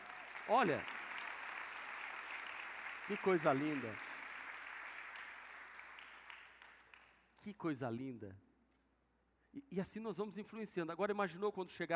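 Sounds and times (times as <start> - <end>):
audience applause: 0.0 - 6.9
speech: 0.5 - 0.9, 3.1 - 4.1, 7.4 - 8.5, 9.5 - 11.9.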